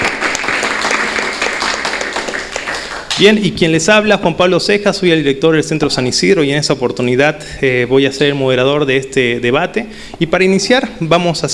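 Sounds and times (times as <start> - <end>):
audience applause: 0.0 - 3.2
speech: 3.2 - 11.5.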